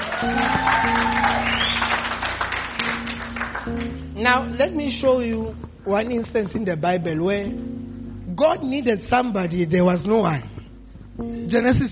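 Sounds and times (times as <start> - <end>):
audience clapping: 0.0 - 4.0
speech: 0.2 - 0.7, 4.2 - 7.7, 8.4 - 10.5, 11.2 - 11.9.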